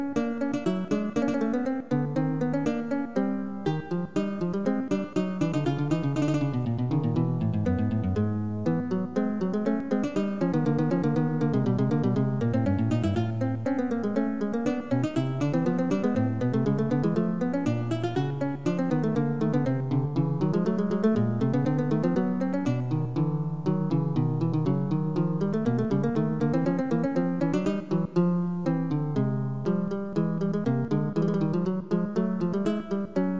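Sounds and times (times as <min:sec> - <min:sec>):
lute in 34edo tuning: 0:00.0 - 0:33.3.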